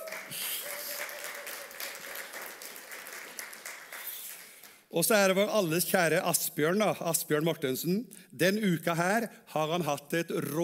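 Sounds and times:
audience applause: 0.0 - 4.8
speech: 4.9 - 10.6.

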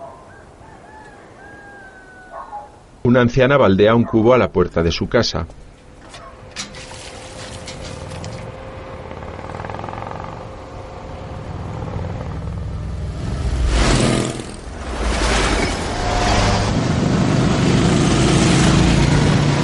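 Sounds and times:
speech: 3.0 - 5.6
convoy of vehicles driving into village: 5.8 - 19.6.

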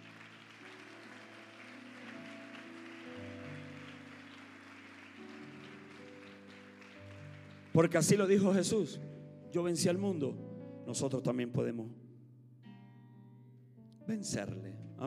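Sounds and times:
audience applause: 0.0 - 8.6
speech: 7.8 - 12.0, 14.1 - 15.0.

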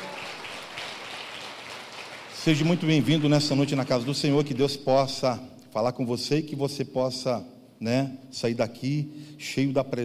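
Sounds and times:
crowd applause: 0.0 - 4.2
speech: 2.4 - 10.0.

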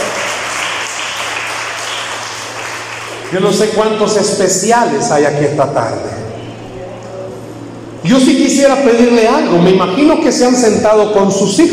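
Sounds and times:
audience applauding: 0.0 - 3.7
speech: 3.3 - 6.3, 8.0 - 11.7.

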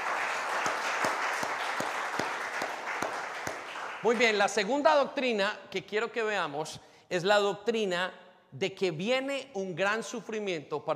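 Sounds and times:
audience applauding loudly: 0.0 - 4.7
rhythmic clapping: 0.0 - 4.9
speech: 4.0 - 10.9.

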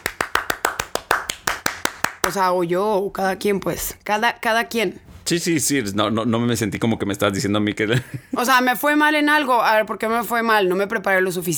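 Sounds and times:
applause: 0.0 - 2.4
speech: 2.3 - 11.5
laughter: 7.9 - 8.4.

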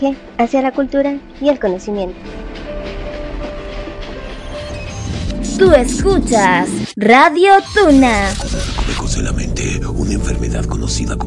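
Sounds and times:
speech: 0.0 - 2.6, 5.6 - 11.2
train rumbling on rails: 2.2 - 6.3.

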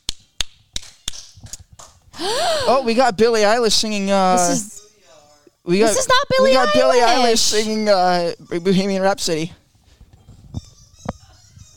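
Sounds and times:
hand clap: 0.0 - 2.0
speech: 2.2 - 4.7, 5.6 - 9.6.

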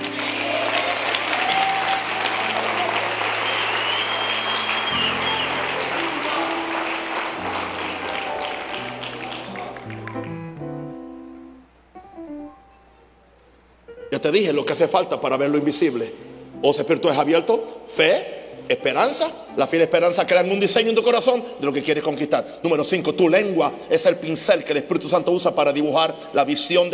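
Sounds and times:
audience applause: 0.0 - 10.6
speech: 14.3 - 26.9.

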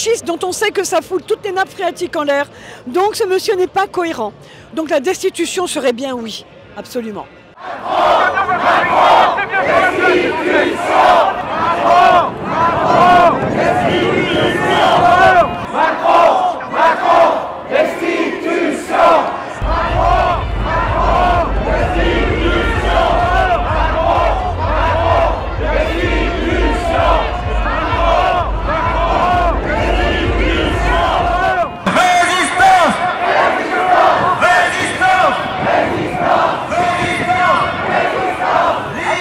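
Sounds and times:
speech: 0.0 - 16.4
protest crowd chanting and shouting at street demonstration: 0.0 - 39.2
steady low rumble: 19.6 - 31.8.

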